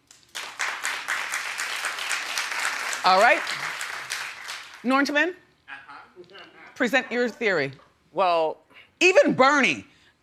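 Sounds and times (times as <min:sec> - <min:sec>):
audience clapping: 0:00.0 - 0:05.2
speech: 0:03.0 - 0:03.7, 0:04.8 - 0:05.4, 0:06.2 - 0:10.2.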